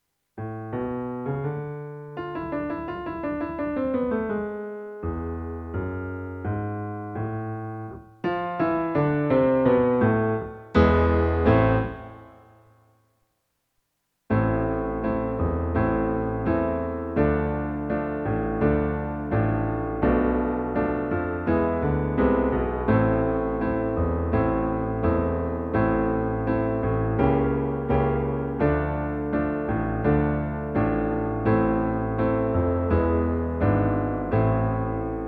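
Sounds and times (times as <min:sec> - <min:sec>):
slow piano backing: 0:00.0 - 0:13.1, 0:14.3 - 0:35.2.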